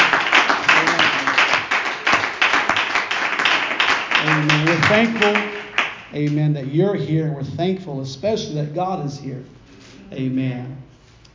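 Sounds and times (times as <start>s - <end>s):
Abundant Life Center church congregation clapping to welcome guests: 0.0s - 6.6s
speech: 6.2s - 10.8s.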